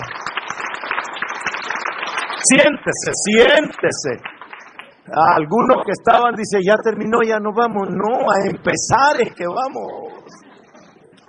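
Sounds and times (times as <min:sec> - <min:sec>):
audience applause: 0:00.0 - 0:06.4
speech: 0:02.5 - 0:04.3, 0:05.1 - 0:10.4.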